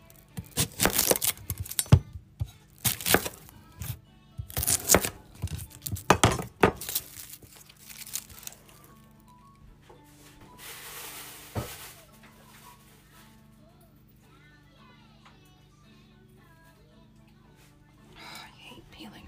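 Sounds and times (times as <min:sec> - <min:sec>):
onion rustling: 0:00.1 - 0:01.9, 0:02.7 - 0:09.2, 0:10.1 - 0:13.3
knife quartering an onion: 0:00.4 - 0:08.2.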